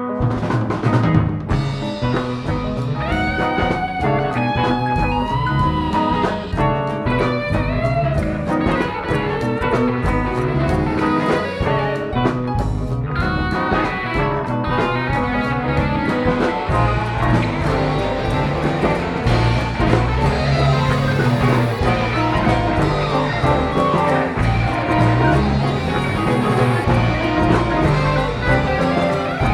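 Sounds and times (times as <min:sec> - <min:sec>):
music groove: 0:00.2 - 0:29.5.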